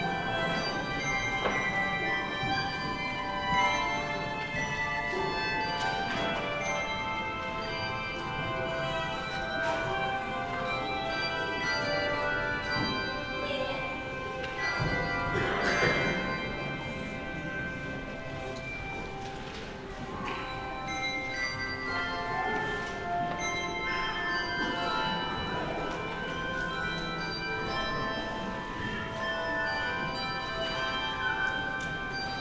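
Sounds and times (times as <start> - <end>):
handbells ringing: 0.0 - 32.3.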